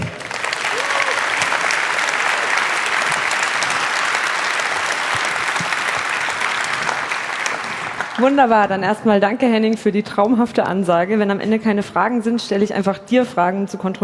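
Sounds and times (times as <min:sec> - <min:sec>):
audience applause: 0:00.0 - 0:08.5
speech: 0:08.2 - 0:14.0.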